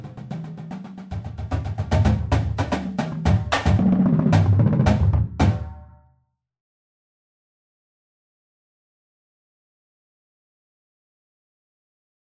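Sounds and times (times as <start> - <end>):
marching percussion: 0.0 - 5.9.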